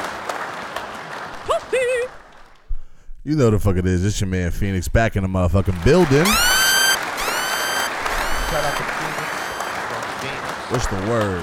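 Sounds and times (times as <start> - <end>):
applause: 0.0 - 2.7, 5.6 - 11.4
speech: 1.5 - 2.2, 3.2 - 6.5, 8.5 - 9.0, 10.7 - 11.4.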